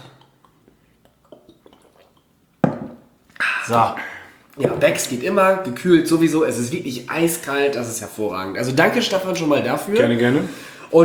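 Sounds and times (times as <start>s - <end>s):
glasses clinking in a toast: 2.6s - 3.0s
speech: 3.7s - 11.0s.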